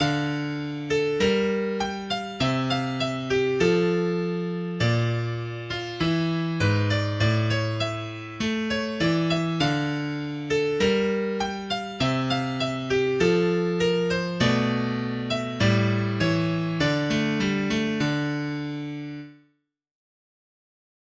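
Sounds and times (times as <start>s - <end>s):
piano music: 0.0s - 19.5s.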